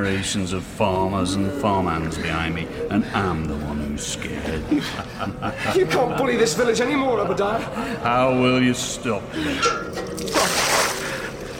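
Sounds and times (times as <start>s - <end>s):
speech: 0.0s - 10.4s
laughter: 2.2s - 8.4s
holy water being splashed: 9.9s - 11.5s.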